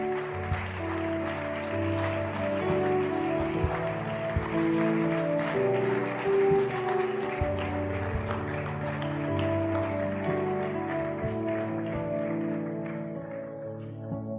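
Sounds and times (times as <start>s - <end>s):
audience applause: 0.0s - 14.1s.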